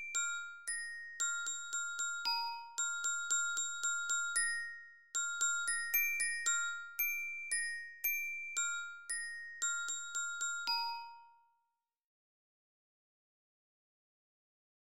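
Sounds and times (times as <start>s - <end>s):
lyra glockenspiel of a Spielmannszug marching band: 0.0s - 11.8s.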